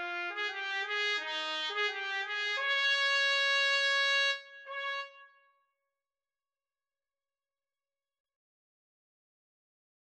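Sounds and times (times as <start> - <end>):
trumpet duet: 0.0 - 5.4.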